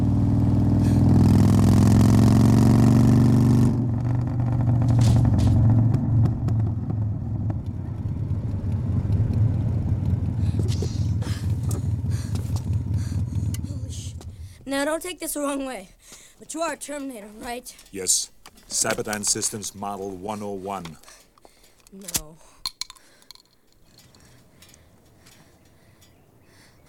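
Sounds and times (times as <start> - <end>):
motorcycle engine running: 0.0 - 15.0
speech: 14.8 - 21.2, 21.9 - 22.5.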